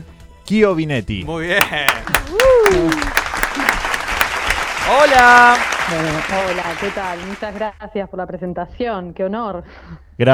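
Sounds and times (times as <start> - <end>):
speech: 0.5 - 3.7, 4.9 - 10.3
audience applause: 1.4 - 7.7.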